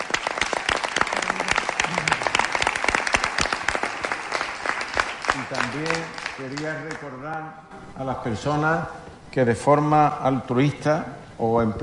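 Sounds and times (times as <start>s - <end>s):
audience applause: 0.0s - 7.2s
speech: 5.5s - 11.8s.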